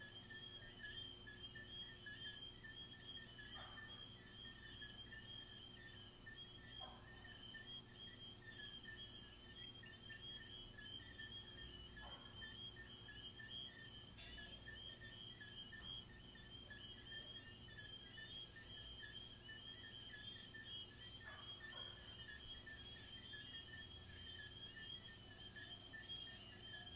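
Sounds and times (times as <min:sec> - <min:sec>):
background hum: 0:00.0 - 0:26.9
crickets chirping: 0:00.0 - 0:26.9.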